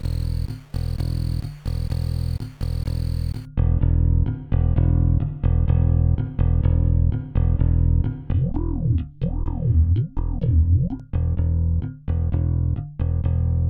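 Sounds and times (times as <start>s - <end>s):
virtual bass guitar playing rowdy: 0.0s - 13.6s.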